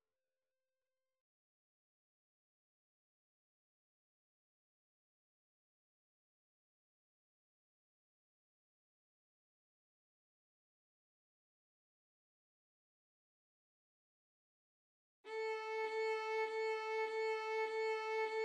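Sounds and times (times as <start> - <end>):
violin and viola duet: 15.3 - 18.4.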